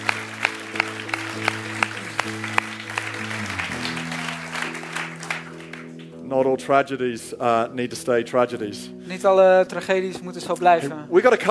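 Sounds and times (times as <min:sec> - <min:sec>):
audience applause: 0:00.0 - 0:06.2
speech: 0:06.3 - 0:11.4.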